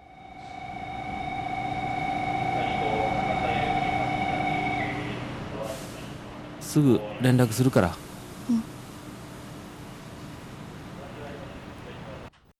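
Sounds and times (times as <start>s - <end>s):
electric train pulling out of a station: 0.0s - 6.7s
speech: 6.8s - 8.7s.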